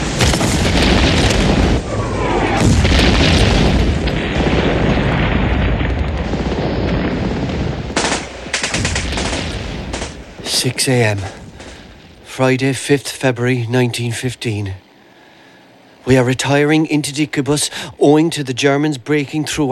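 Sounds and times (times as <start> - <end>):
artillery battery firing: 0.0 - 12.3
speech: 10.6 - 11.4, 12.4 - 14.8, 16.0 - 19.7.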